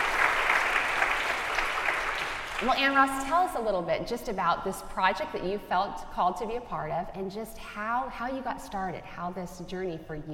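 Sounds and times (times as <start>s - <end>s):
audience applause welcoming a speaker: 0.0s - 2.8s
speech: 2.6s - 10.3s.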